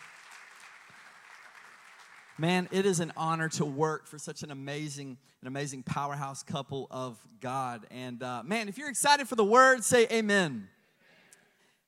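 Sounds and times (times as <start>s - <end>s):
audience round of applause: 0.0s - 3.0s
speech: 2.4s - 10.8s.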